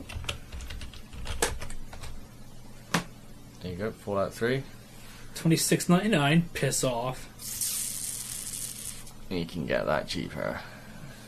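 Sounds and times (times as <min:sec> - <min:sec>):
keyboard typing into a Steam search on a PC: 0:00.0 - 0:02.1
speech: 0:03.6 - 0:04.8, 0:05.4 - 0:07.6, 0:09.3 - 0:10.7.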